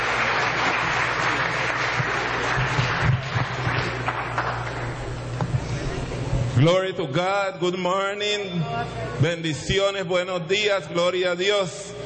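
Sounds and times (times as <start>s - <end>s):
congregation applauding at a church service: 0.0s - 5.3s
speech: 6.6s - 11.9s.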